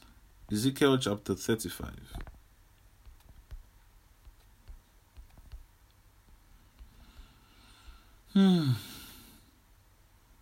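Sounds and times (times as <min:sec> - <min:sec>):
speech: 0:00.5 - 0:02.3, 0:08.4 - 0:08.9
typing on a computer keyboard: 0:04.3 - 0:05.6.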